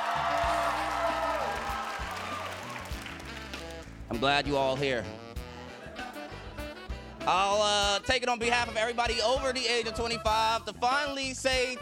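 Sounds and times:
crowd clapping and cheering: 0.0s - 4.1s
speech: 4.1s - 5.2s, 7.2s - 11.8s.

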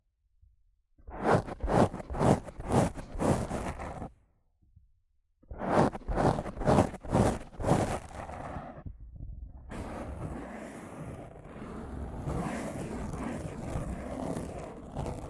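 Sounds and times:
rough scratching and brushing on a microphone: 1.0s - 4.2s, 5.5s - 9.0s, 9.7s - 15.2s.

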